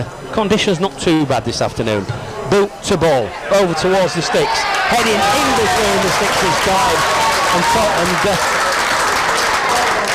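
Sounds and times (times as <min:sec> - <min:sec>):
rugby league commentator speaking: 0:00.0 - 0:08.4
speech: 0:00.0 - 0:08.7
spectators applauding at a rugby league match: 0:04.6 - 0:10.1.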